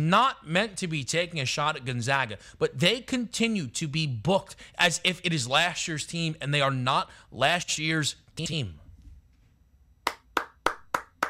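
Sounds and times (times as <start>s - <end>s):
speech: 0.0s - 8.8s
round of applause clapping: 10.1s - 11.2s.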